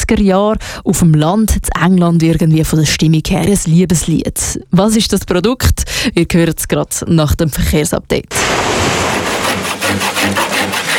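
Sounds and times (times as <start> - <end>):
speech: 0.1 - 9.1, 9.9 - 10.8
carpenter sawing or rasping wood by hand: 8.4 - 10.9.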